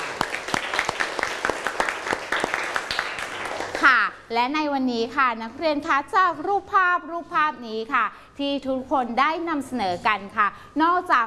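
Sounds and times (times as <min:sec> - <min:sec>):
classmates clapping for everyone: 0:00.0 - 0:04.1
speech: 0:03.8 - 0:11.2.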